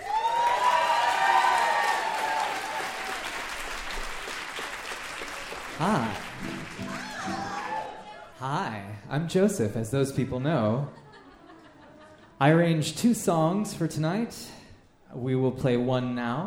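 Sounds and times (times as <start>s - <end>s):
audience applause and cheering: 0.0s - 8.4s
speech: 5.8s - 7.4s, 8.4s - 11.0s, 12.4s - 16.4s
laughter: 10.6s - 12.5s.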